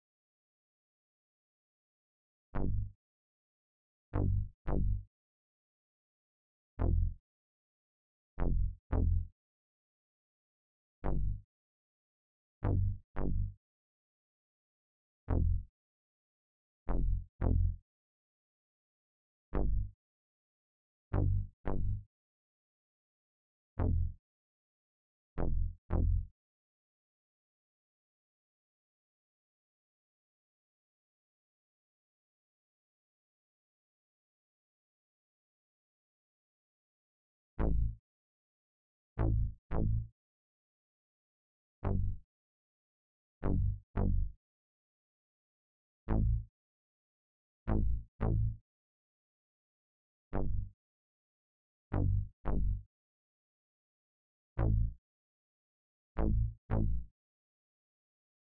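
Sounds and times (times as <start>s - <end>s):
bass: 2.5s - 3.0s, 4.1s - 5.1s, 6.8s - 7.2s, 8.4s - 9.3s, 11.0s - 11.4s, 12.6s - 13.6s, 15.3s - 15.7s, 16.9s - 17.8s, 19.5s - 20.0s, 21.1s - 22.1s, 23.8s - 24.2s, 25.4s - 26.4s, 37.6s - 38.0s, 39.2s - 40.1s, 41.9s - 42.2s, 43.4s - 44.4s, 46.1s - 46.5s, 47.7s - 48.6s, 50.3s - 50.7s, 51.9s - 52.9s, 54.6s - 55.0s, 56.2s - 57.2s.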